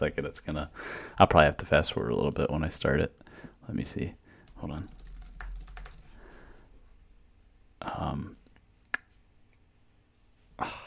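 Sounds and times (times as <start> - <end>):
speech: 0.0 - 5.0, 7.8 - 8.4
computer keyboard typing: 4.5 - 6.2.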